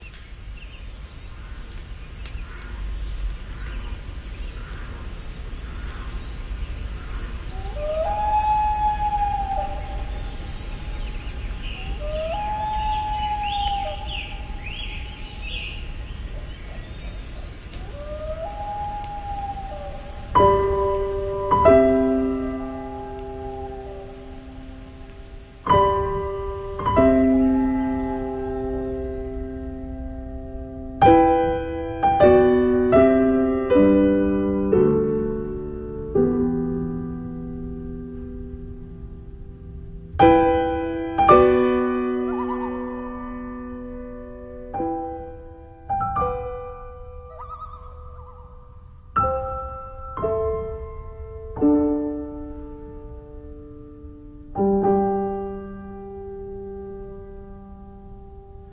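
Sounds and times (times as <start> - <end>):
loons calling: 0.0 - 32.0, 41.2 - 43.9, 46.3 - 50.1
piano: 6.2 - 58.7.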